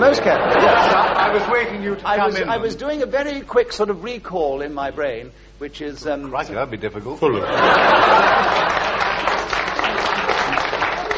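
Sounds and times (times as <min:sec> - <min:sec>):
laughter: 0:00.0 - 0:02.7, 0:07.4 - 0:11.1
speech: 0:00.0 - 0:08.8
studio audience clapping: 0:08.0 - 0:11.1.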